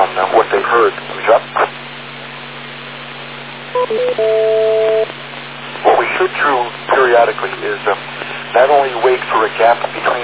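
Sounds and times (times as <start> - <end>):
radio channel hiss and hum: 0.0 - 3.6, 4.8 - 10.2
radio repeater courtesy beeps: 3.8 - 5.1
speech: 6.6 - 10.2.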